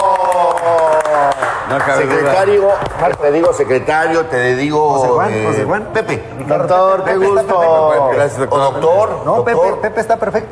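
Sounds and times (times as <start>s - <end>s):
audience clapping: 0.0s - 3.7s
voices and cheering: 0.0s - 3.8s
speech: 1.7s - 10.5s.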